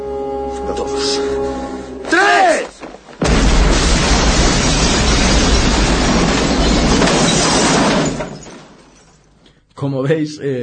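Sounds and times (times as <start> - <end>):
speech: 0.7 - 2.7, 9.8 - 10.6
bomb exploding in a toilet in an action film scene: 3.2 - 8.4.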